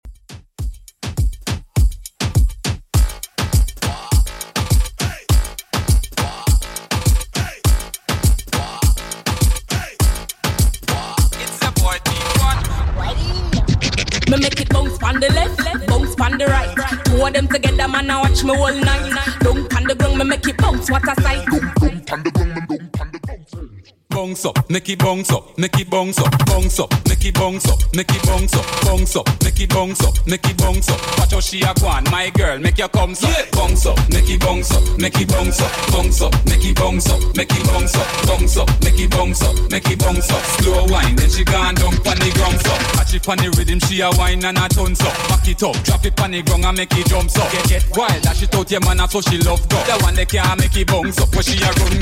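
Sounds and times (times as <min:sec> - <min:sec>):
moombahton dance track: 0:00.1 - 0:52.0.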